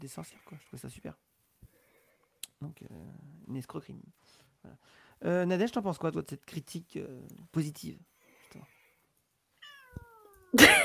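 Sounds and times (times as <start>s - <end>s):
speech: 0.0s - 1.4s, 2.6s - 8.8s, 10.5s - 10.8s
cat meowing on its owner's lap: 9.6s - 10.6s.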